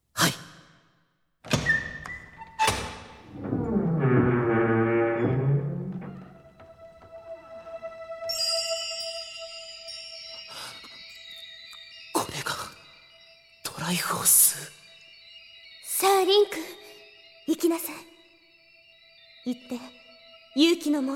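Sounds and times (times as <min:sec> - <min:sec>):
heavy door being opened: 0:01.5 - 0:07.5
ringing tone with shimmering chimes: 0:06.7 - 0:21.1
speech: 0:17.7 - 0:18.2, 0:20.6 - 0:21.1.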